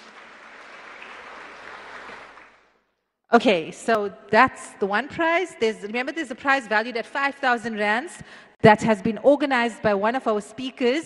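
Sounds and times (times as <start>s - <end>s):
audience clapping: 0.0s - 2.8s
speech: 3.3s - 11.0s.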